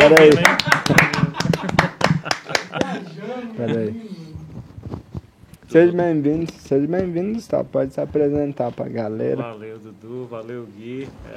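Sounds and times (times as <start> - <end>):
speech: 0.0 - 1.0, 3.6 - 4.2, 5.7 - 11.3
audience applause: 0.0 - 3.5
laughter: 0.2 - 4.2.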